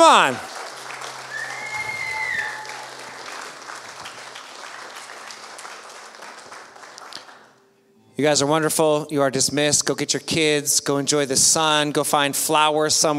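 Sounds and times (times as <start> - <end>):
audience applause: 0.0 - 7.5
speech: 0.2 - 0.5, 8.2 - 13.1.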